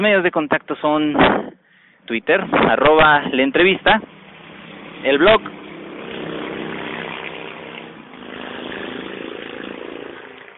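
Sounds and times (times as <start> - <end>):
speech: 0.0 - 4.2, 5.0 - 5.6
noisy motorcycle engine roaring: 2.3 - 10.5.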